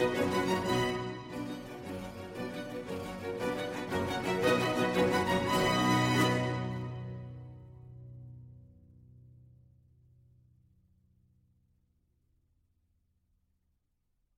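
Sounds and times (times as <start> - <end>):
concerto for strings allegro molto: 0.0 - 7.7.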